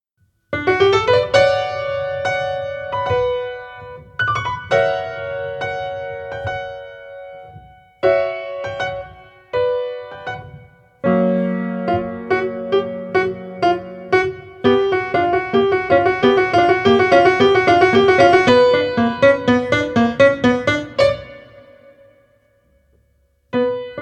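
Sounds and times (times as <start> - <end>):
piano: 0.2 - 23.9.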